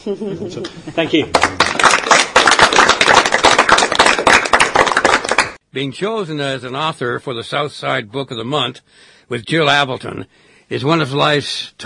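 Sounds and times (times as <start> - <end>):
speech: 0.0 - 2.9, 5.8 - 11.8
audience applause: 1.3 - 5.6.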